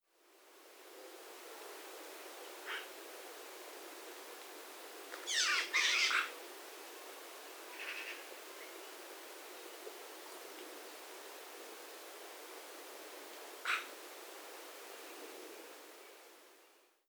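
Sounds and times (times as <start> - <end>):
Pica pica: 5.3 - 6.3, 13.6 - 13.9.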